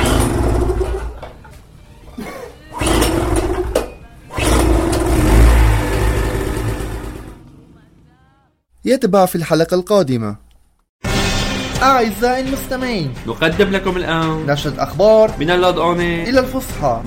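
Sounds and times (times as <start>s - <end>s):
electric generator engine rattling: 0.0s - 1.5s, 2.6s - 8.1s
speech: 8.9s - 10.4s, 11.8s - 17.0s.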